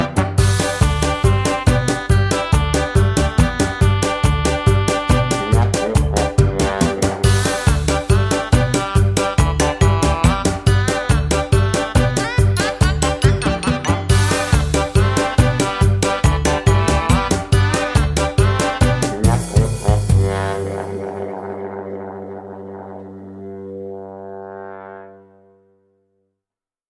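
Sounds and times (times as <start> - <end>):
music for children's videos: 0.0 - 21.1.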